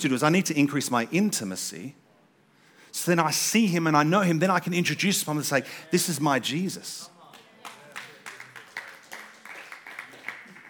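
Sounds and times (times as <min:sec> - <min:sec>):
speech: 0:00.0 - 0:02.0, 0:02.9 - 0:07.2
sparse half-hearted audience clapping: 0:07.2 - 0:10.6.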